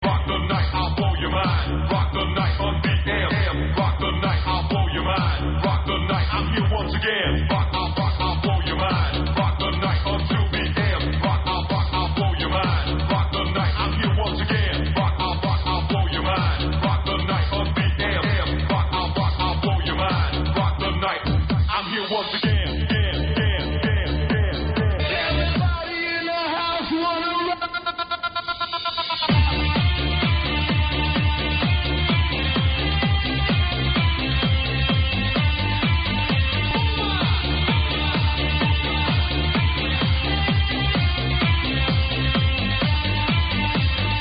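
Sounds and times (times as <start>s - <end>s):
old techno music: 0.0s - 44.2s.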